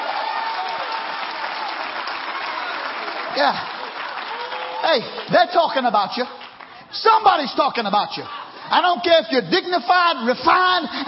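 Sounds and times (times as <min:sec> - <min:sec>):
audience clapping: 0:00.0 - 0:07.4
speech: 0:03.4 - 0:03.7, 0:04.8 - 0:11.0.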